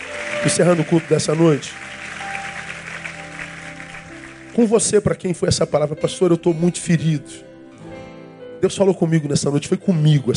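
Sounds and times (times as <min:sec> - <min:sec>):
audience applauding: 0:00.0 - 0:05.0
speech: 0:00.4 - 0:01.9, 0:04.6 - 0:07.5, 0:08.6 - 0:10.3.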